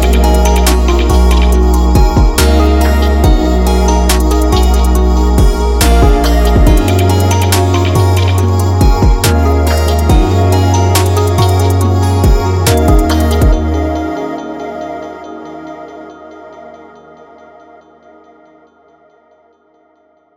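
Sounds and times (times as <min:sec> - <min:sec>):
melodic trap beat: 0:00.0 - 0:15.9.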